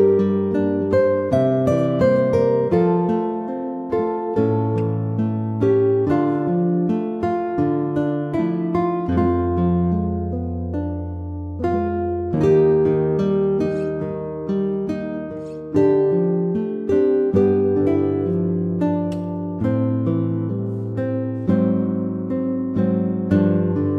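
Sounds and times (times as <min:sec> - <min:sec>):
gentle guitar: 0:00.0 - 0:23.9.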